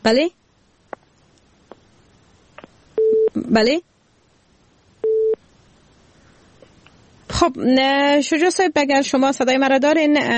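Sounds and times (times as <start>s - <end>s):
speech: 0.0s - 0.4s, 3.4s - 3.9s, 7.4s - 10.3s
busy tone on a radio call-in: 3.0s - 3.4s, 5.0s - 5.4s.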